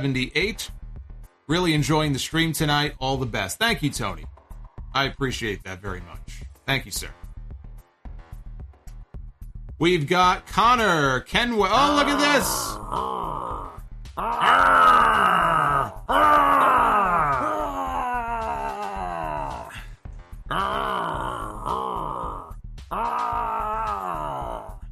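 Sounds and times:
speech: 0:00.0 - 0:00.8, 0:01.5 - 0:04.3, 0:04.9 - 0:07.2, 0:09.8 - 0:13.5, 0:14.2 - 0:17.1
Beth Phoenix growl sound alert: 0:11.8 - 0:19.8, 0:20.5 - 0:24.8.

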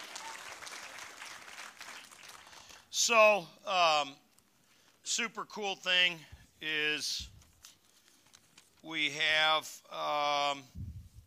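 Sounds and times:
church congregation applauding after a prayer: 0:00.0 - 0:02.9
speech: 0:03.0 - 0:04.2, 0:05.1 - 0:07.3, 0:08.8 - 0:10.8.

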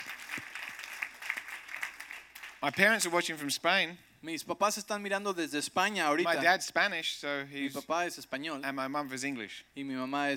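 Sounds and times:
audience applause: 0:00.0 - 0:02.8
speech: 0:02.6 - 0:10.3.

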